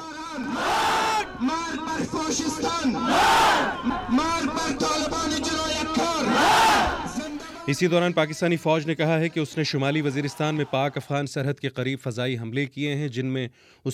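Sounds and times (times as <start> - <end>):
protesters in Kabul chanting slogans against the Taliban: 0.4 - 7.6
speech: 2.3 - 5.6, 7.7 - 13.9.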